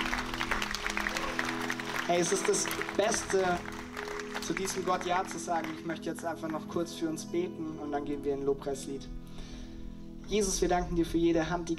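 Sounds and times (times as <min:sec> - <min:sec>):
audience applause: 0:00.0 - 0:06.6
speech: 0:02.1 - 0:03.8, 0:04.4 - 0:09.2, 0:10.3 - 0:11.7.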